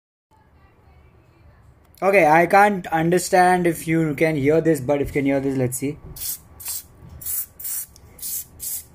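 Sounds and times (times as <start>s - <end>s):
speech: 2.0s - 6.4s
aerosol pain relief spray hissing: 6.2s - 8.9s.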